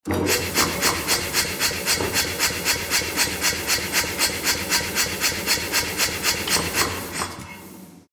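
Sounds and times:
machine running: 0.0s - 8.0s.

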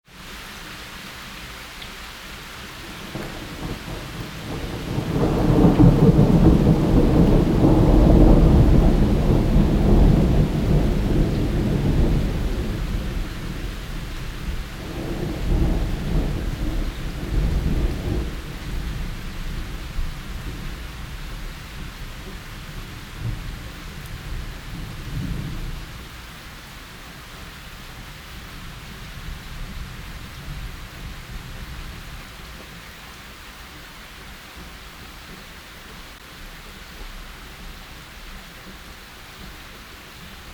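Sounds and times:
rain: 0.0s - 40.5s
thunder: 3.0s - 21.2s, 23.1s - 26.0s.

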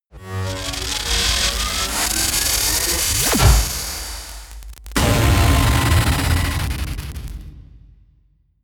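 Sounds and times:
electricity buzzing: 0.2s - 6.8s.

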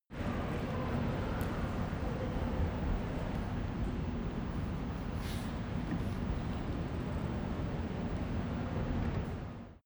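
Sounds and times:
subway rail traffic in a subway station: 0.1s - 9.8s.

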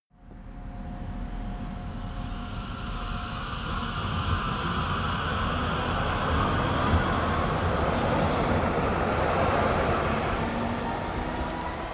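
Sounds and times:
new subway train departing: 0.2s - 11.9s.

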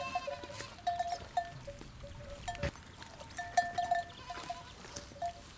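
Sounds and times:
goats bleating: 0.0s - 1.2s, 3.3s - 5.2s.

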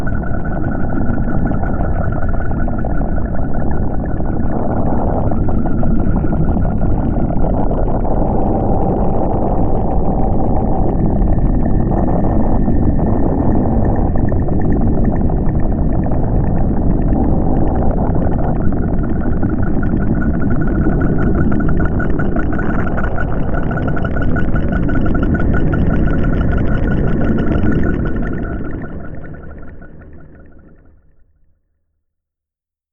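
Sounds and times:
drone bubbling: 0.0s - 31.4s.

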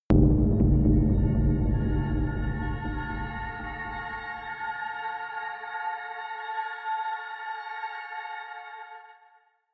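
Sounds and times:
drones: 0.1s - 5.3s
horror shimmer: 0.2s - 7.3s.

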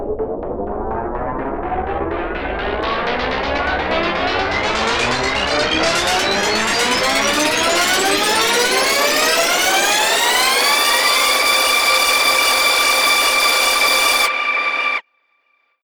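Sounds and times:
rising riser sweeps: 0.2s - 15.0s
tape machine noise spinning up: 0.2s - 15.0s.

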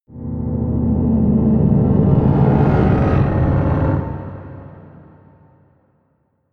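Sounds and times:
dark scary scrapes: 0.2s - 5.4s.

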